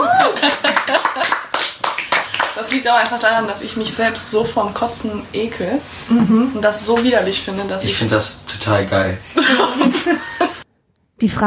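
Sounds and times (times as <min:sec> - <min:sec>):
brief high whooping voice: 0:00.0 - 0:00.6
laughter: 0:00.0 - 0:01.5, 0:09.3 - 0:10.6
hands clapping: 0:00.2 - 0:03.3
speech: 0:02.7 - 0:10.4, 0:11.2 - 0:11.4.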